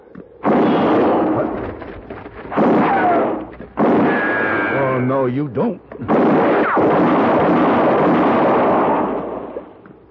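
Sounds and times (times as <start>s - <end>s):
gunshot in a western standoff near a well: 0.4s - 4.9s, 6.0s - 9.8s
speech: 5.2s - 7.7s.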